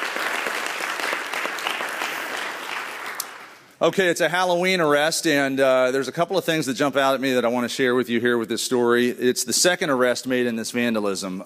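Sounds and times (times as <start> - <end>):
crowd applauding: 0.0 - 3.8
speech: 3.8 - 11.4.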